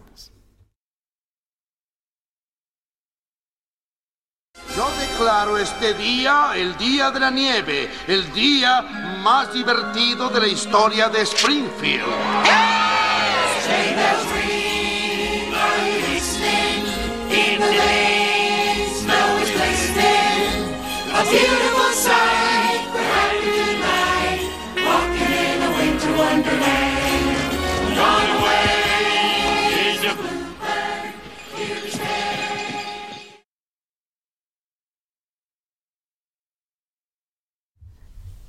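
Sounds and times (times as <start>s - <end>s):
speech: 0.2s - 0.4s, 4.8s - 13.0s
recorded Christmas song sung by chorus of cartoon character voices: 10.1s - 33.4s.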